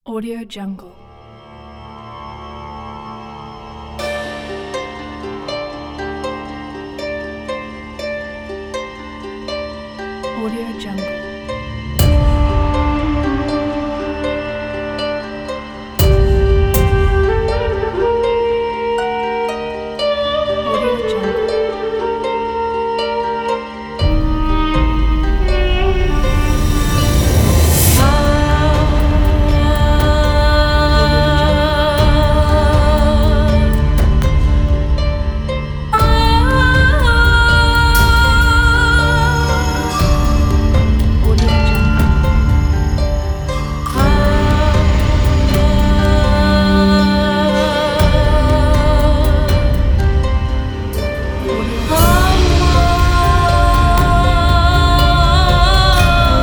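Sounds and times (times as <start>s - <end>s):
Middle Eastern ethereal vocals: 0.0s - 56.4s.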